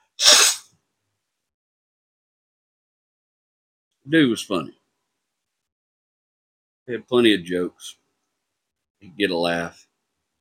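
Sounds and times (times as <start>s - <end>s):
sneeze from someone suffering allergies: 0.0s - 0.7s
speech: 4.0s - 4.8s, 6.9s - 8.0s, 9.0s - 9.9s.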